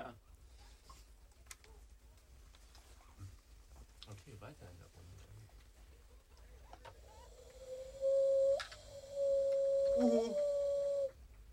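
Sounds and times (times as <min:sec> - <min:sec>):
speech: 0:04.4 - 0:05.0
tawny owl call: 0:06.7 - 0:11.2.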